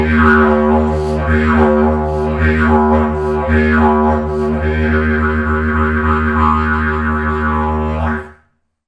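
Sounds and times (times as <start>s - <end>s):
plastic didgeridoo playing: 0.0s - 8.3s.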